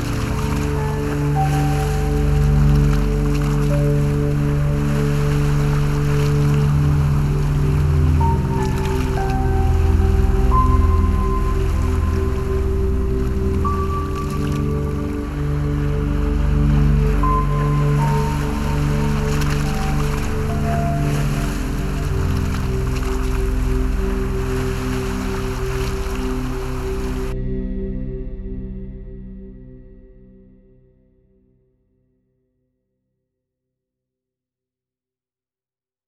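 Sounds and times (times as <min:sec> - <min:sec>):
ocean waves: 0:00.0 - 0:27.4.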